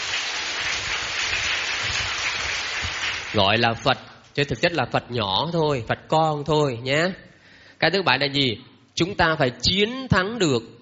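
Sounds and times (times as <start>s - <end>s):
audience applause: 0.0s - 3.6s
speech: 3.3s - 10.7s.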